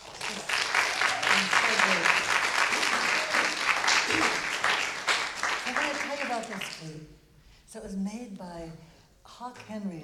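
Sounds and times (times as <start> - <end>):
audience applause: 0.0 - 6.8
speech: 7.7 - 10.0.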